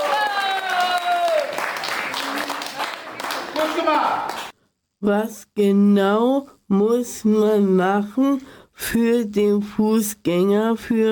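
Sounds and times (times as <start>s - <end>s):
applause: 0.0s - 4.6s
speech: 5.0s - 11.1s.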